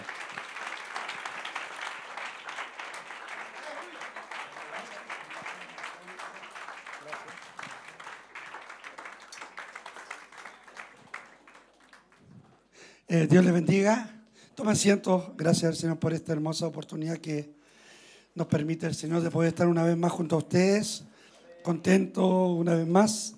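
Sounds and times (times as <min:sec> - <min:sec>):
audience applause: 0:00.0 - 0:12.7
speech: 0:13.1 - 0:17.6, 0:18.4 - 0:23.3.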